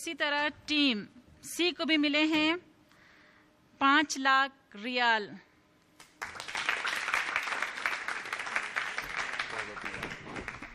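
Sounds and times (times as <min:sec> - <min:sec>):
speech: 0:00.0 - 0:02.7, 0:03.8 - 0:05.5
audience applause: 0:06.2 - 0:10.7.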